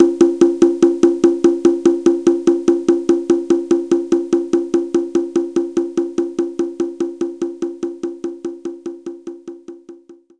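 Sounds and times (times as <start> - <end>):
low conga: 0.0 - 10.3.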